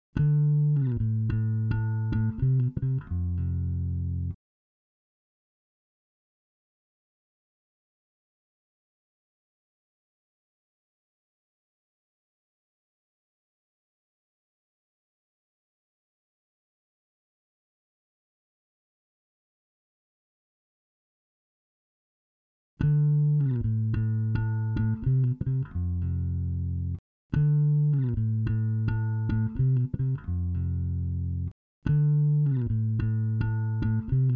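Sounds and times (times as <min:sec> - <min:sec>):
bass: 0:00.1 - 0:04.4, 0:22.8 - 0:34.3.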